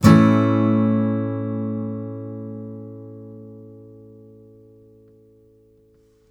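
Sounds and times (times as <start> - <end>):
blues guitar in A major: 0.0 - 5.9.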